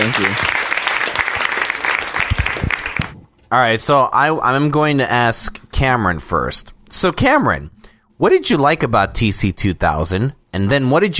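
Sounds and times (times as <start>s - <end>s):
clapping: 0.0s - 3.2s
speech: 0.1s - 0.6s, 3.5s - 11.1s.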